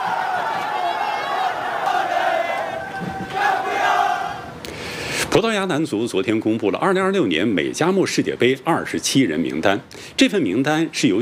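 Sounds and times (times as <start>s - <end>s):
crowd cheering and shouting celebrating a championship win: 0.0s - 4.5s
speech: 5.4s - 11.1s.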